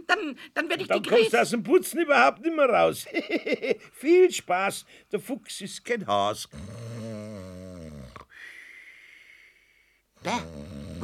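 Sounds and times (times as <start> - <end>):
speech: 0.2 - 6.9
snoring: 6.5 - 8.4, 10.2 - 11.0.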